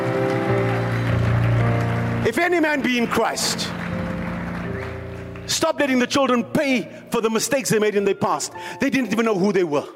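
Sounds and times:
audience clapping hands: 0:00.0 - 0:06.4
speech: 0:02.3 - 0:03.8, 0:05.5 - 0:09.9.

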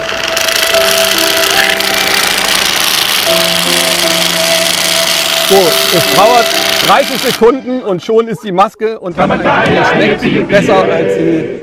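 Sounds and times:
blender running: 0:00.0 - 0:07.4
speech: 0:05.5 - 0:11.6.

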